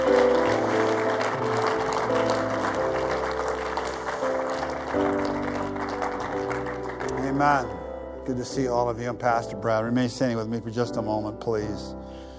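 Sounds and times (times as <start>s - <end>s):
audience clapping: 0.0s - 7.8s
speech: 7.4s - 12.1s.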